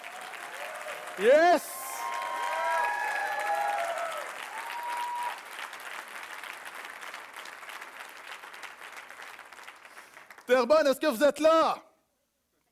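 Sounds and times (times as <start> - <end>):
scattered cheers: 0.0 - 5.4
audience applause: 0.0 - 10.7
speech: 1.2 - 1.8, 10.6 - 11.9.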